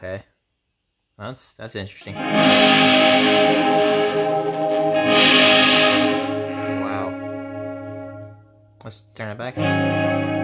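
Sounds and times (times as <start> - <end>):
speech: 0.0 - 0.3, 1.2 - 4.6, 8.9 - 10.4
harsh distortion from a clipping setting on the Mangled Space effect: 2.2 - 8.2.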